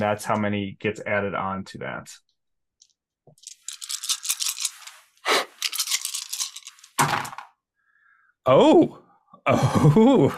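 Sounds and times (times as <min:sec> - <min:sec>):
speech: 0:00.0 - 0:02.3, 0:08.4 - 0:10.3
nine dice rolling: 0:03.4 - 0:07.5
laughter: 0:09.5 - 0:10.3.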